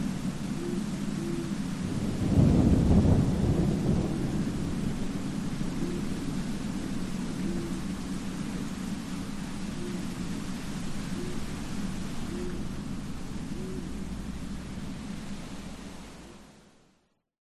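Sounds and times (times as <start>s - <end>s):
rain: 0.0s - 17.0s
night wind: 0.0s - 17.1s
owl: 0.5s - 1.7s, 5.7s - 6.3s, 7.4s - 8.0s, 9.7s - 10.3s, 11.0s - 12.8s, 13.4s - 14.0s
thunderstorm: 1.9s - 5.4s.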